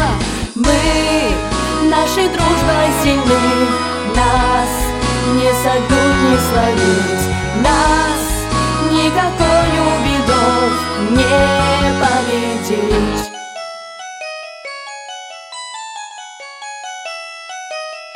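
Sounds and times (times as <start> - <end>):
anthem: 0.0 - 13.6.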